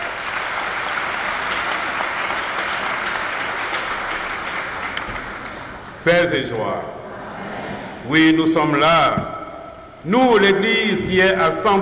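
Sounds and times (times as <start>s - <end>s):
audience applause: 0.0s - 5.9s
speech: 6.0s - 7.0s, 8.1s - 9.3s, 10.0s - 11.7s.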